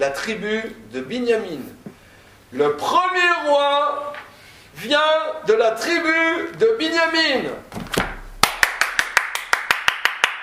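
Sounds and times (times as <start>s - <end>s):
speech: 0.0s - 1.8s, 2.5s - 4.2s, 4.8s - 7.7s
applause in a steady rhythmic beat: 8.4s - 10.4s.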